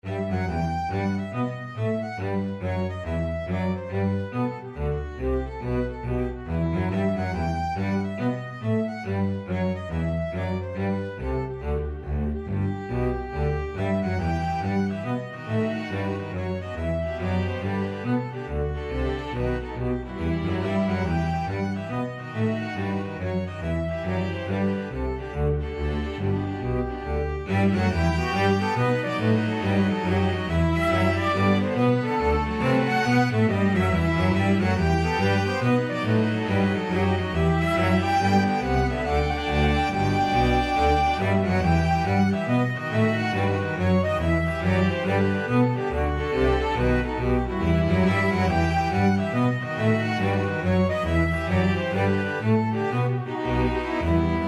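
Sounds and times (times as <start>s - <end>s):
flexible ensemble of four players: 0.0s - 54.4s.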